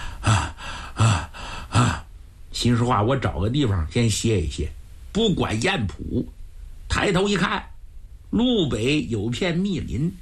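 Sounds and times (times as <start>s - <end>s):
storyteller imitating out-of-breath panting: 0.0s - 2.0s
speech: 2.6s - 6.4s, 7.0s - 7.7s, 8.3s - 10.2s.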